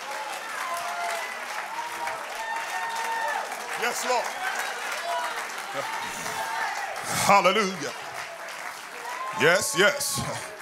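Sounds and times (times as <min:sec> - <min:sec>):
audience clapping hands: 0:00.0 - 0:10.5
speech: 0:03.8 - 0:04.6, 0:05.7 - 0:08.1, 0:09.4 - 0:10.5
faint crowd voices: 0:04.7 - 0:10.5.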